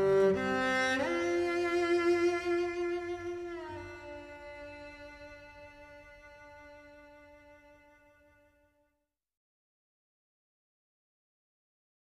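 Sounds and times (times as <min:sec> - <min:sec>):
cello: 0:00.0 - 0:08.9.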